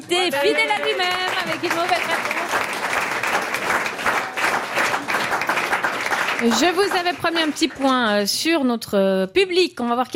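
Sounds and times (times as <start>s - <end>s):
speech: 0.0s - 3.0s, 6.4s - 10.1s
audience applause: 0.3s - 8.2s.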